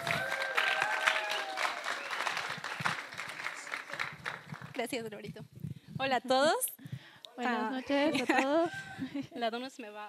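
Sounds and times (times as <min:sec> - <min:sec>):
audience applause welcoming guests: 0:00.0 - 0:04.8
speech: 0:04.8 - 0:06.7, 0:07.4 - 0:10.0
laughter: 0:08.0 - 0:09.3.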